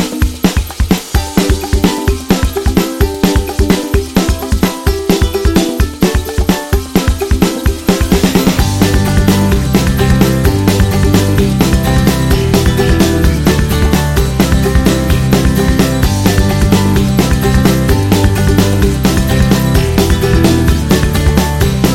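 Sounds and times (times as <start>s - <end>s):
happy indie folk music: 0.1s - 21.9s.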